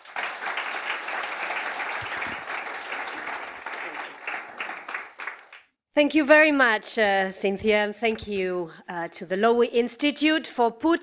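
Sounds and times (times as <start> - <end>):
audience applause welcoming a speaker at a Lowy Institute event: 0.0 - 5.7
speech: 6.0 - 11.0.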